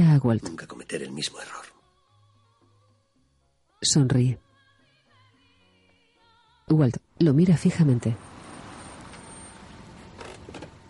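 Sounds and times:
speech: 0:00.1 - 0:01.7, 0:03.8 - 0:04.4, 0:06.7 - 0:08.3
car driving on a road: 0:07.9 - 0:10.8.

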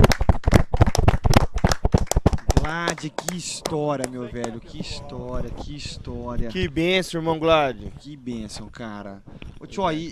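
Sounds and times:
applause: 0:00.0 - 0:04.6
speech: 0:02.7 - 0:10.0.

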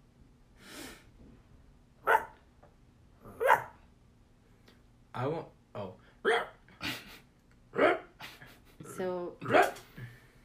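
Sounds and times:
short-haired chihuahua barking: 0:02.0 - 0:02.4, 0:03.2 - 0:03.8, 0:06.2 - 0:06.6, 0:09.4 - 0:09.8
speech: 0:05.2 - 0:05.5.

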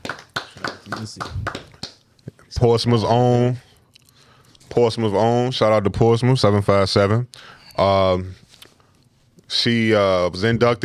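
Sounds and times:
hand claps: 0:00.0 - 0:02.0
speech: 0:00.9 - 0:01.7, 0:02.5 - 0:03.7, 0:04.8 - 0:08.4, 0:09.5 - 0:10.8.

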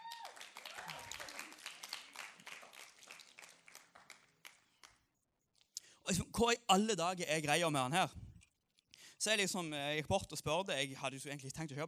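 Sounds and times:
audience applause: 0:00.0 - 0:04.9
speech: 0:06.1 - 0:08.2, 0:09.2 - 0:11.8.

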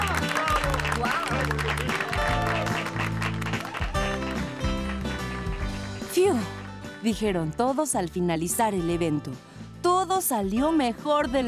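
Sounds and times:
audience applause: 0:00.0 - 0:06.1
music with low rhythmic bass line: 0:00.0 - 0:11.4
speech: 0:06.3 - 0:11.4.

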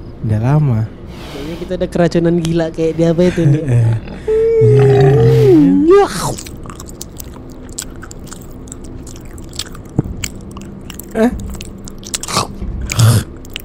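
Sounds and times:
speech: 0:00.2 - 0:06.5, 0:11.2 - 0:11.4
laughter: 0:03.2 - 0:05.7
groaning growl: 0:03.6 - 0:06.4, 0:12.2 - 0:13.4
person chewing and eating pork: 0:06.2 - 0:13.6.

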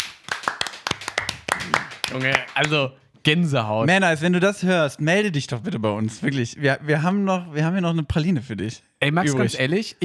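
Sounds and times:
hand claps: 0:00.0 - 0:02.8
speech: 0:02.1 - 0:10.0.

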